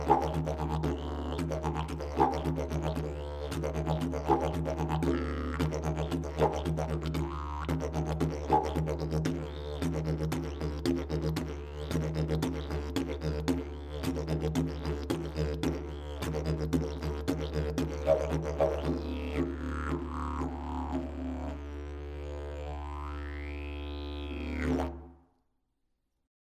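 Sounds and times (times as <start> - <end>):
didgeridoo: 0.0 - 25.2.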